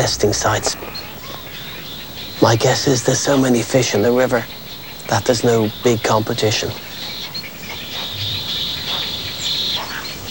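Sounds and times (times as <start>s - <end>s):
speech: 0.0s - 1.0s, 2.4s - 6.9s
egrets calling at a heron nest: 0.0s - 10.2s.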